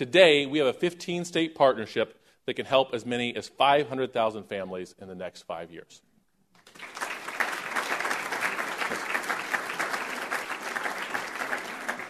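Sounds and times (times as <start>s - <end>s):
speech: 0.0s - 6.1s
audience clapping: 6.6s - 12.0s.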